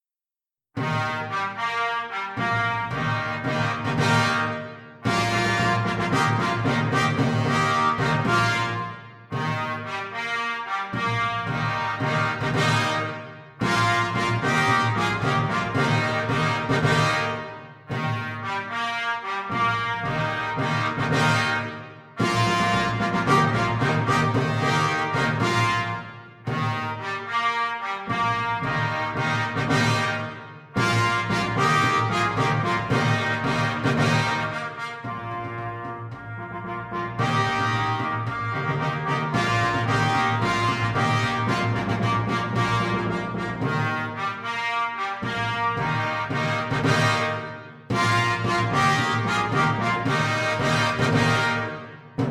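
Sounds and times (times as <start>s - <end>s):
fanfare greeting: 0.8s - 52.2s.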